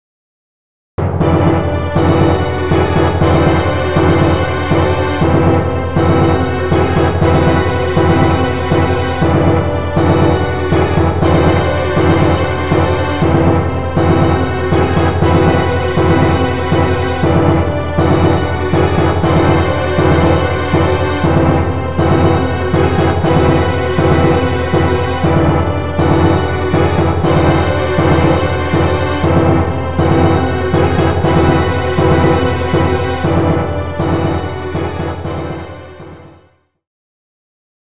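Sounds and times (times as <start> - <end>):
unused game music: 1.0 - 36.5.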